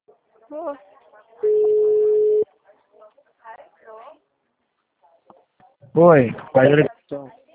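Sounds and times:
speech: 0.5s - 1.8s, 6.0s - 7.4s
telephone tone after a dropped call: 1.4s - 2.4s.

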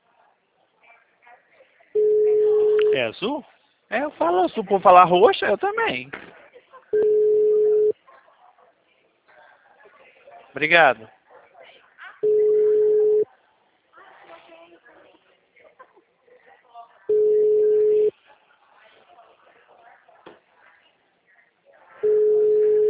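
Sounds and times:
telephone tones on a call to a Claro number: 2.0s - 3.1s, 7.0s - 8.0s, 12.2s - 13.3s, 17.1s - 18.1s, 22.0s - 22.8s
recorded voice speaking: 2.5s - 6.3s, 10.6s - 11.1s
speech: 3.0s - 6.3s, 10.6s - 11.2s.

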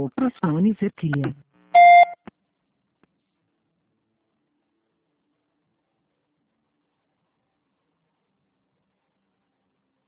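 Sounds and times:
speech: 0.0s - 1.5s
voicemail tone signal beep: 1.8s - 2.2s.

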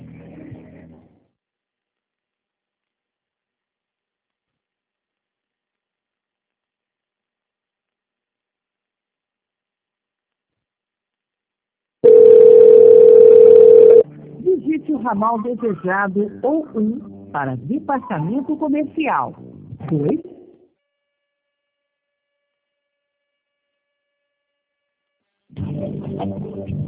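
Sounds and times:
telephone tone while a call waits to be answered: 12.0s - 14.0s
speech: 14.6s - 20.3s, 26.2s - 26.8s.

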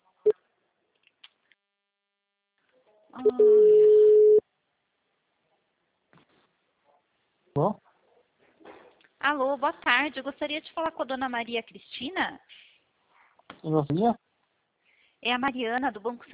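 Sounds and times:
speech: 3.2s - 3.8s, 7.6s - 7.8s, 9.2s - 12.6s, 13.6s - 14.2s, 15.2s - 16.3s
telephone line tone: 3.2s - 4.4s.

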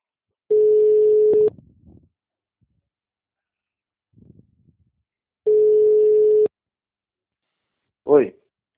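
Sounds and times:
telephone busy tone after a dropped call: 0.5s - 1.5s, 5.5s - 6.5s.

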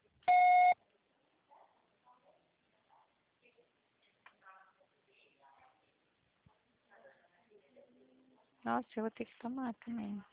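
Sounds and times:
voicemail recording beep: 0.3s - 0.8s
speech: 8.6s - 10.3s.

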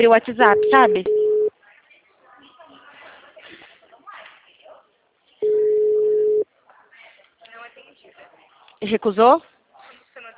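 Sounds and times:
speech: 0.0s - 1.2s, 8.8s - 9.5s
WhatsApp voice call ringing tone: 0.4s - 1.5s, 5.4s - 6.4s.

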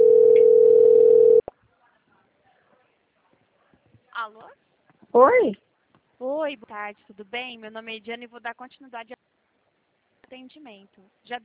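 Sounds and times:
telephone ringing tone heard by a caller: 0.0s - 1.4s
speech: 4.5s - 5.6s, 6.2s - 9.3s, 10.3s - 11.4s.

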